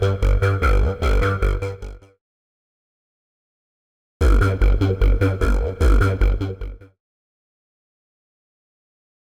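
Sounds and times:
synth and bass loop at 150 bpm: 0:00.0 - 0:02.0, 0:04.2 - 0:06.4.

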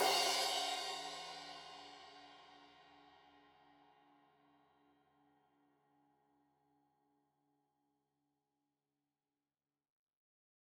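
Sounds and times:
15 inch crash cymbal edge hit: 0:00.0 - 0:02.1.

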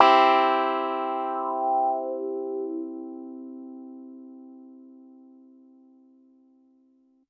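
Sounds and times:
piano and clavinet playing hard in major: 0:00.0 - 0:04.8.

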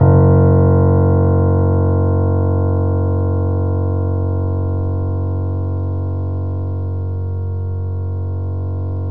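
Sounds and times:
Yamaha C7 grand piano: 0:00.0 - 0:09.1.

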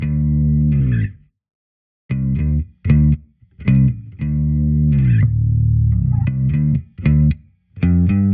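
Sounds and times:
D bass tone: 0:00.0 - 0:01.2, 0:02.1 - 0:08.3.

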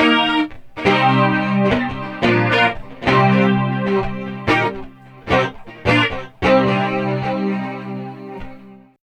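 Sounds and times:
guitar: 0:00.0 - 0:09.0.

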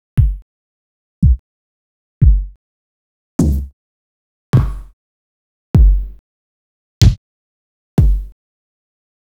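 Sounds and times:
vinyl bass drum: 0:00.2 - 0:00.4, 0:01.2 - 0:01.4, 0:02.2 - 0:02.6, 0:03.4 - 0:03.7, 0:04.6 - 0:04.9, 0:05.8 - 0:06.2, 0:08.0 - 0:08.4
vinyl snare drum: 0:04.6 - 0:04.9, 0:05.8 - 0:06.1, 0:08.0 - 0:08.3.

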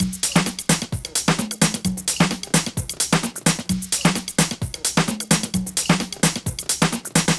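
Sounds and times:
swing quantized drum loops: 0:00.0 - 0:07.3.

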